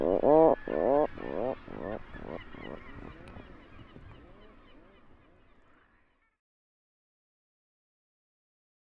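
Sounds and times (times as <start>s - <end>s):
Atlantic Puffin calling: 0.0s - 5.1s.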